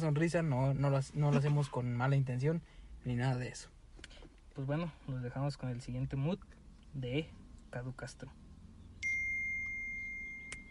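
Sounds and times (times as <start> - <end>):
speech: 0.0 - 3.8, 4.6 - 8.4
notification chime: 9.0 - 10.7.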